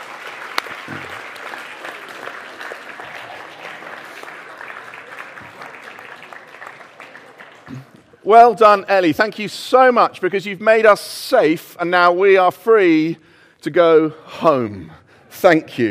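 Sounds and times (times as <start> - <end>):
applause: 0.0 - 8.2
speech: 8.3 - 15.8.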